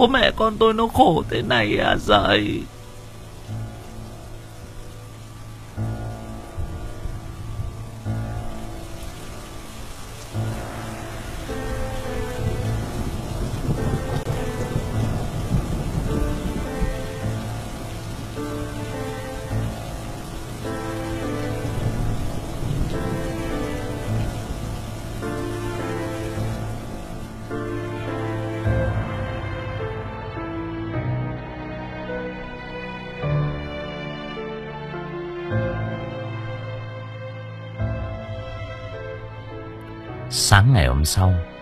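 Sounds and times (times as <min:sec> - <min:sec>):
speech: 0:00.0 - 0:02.8, 0:40.6 - 0:41.5
heavy overnight rain: 0:00.0 - 0:41.5
strong wind: 0:05.8 - 0:30.2
deep thunder rumbling: 0:10.3 - 0:29.4.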